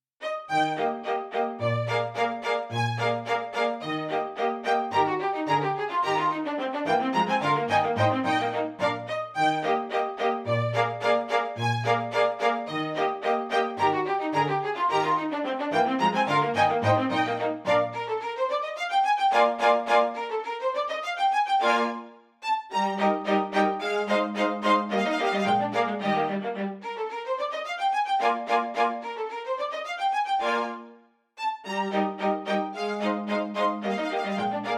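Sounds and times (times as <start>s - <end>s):
contredanse for two violins and bass: 0.2s - 34.7s.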